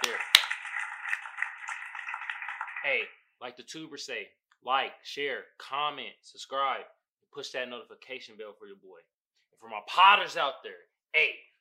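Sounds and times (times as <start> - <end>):
hand claps: 0.0 - 3.0
speech: 2.8 - 11.5.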